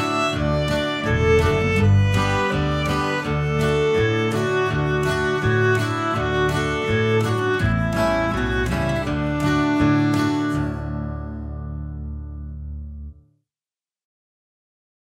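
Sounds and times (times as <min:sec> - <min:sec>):
violin: 0:00.0 - 0:11.5.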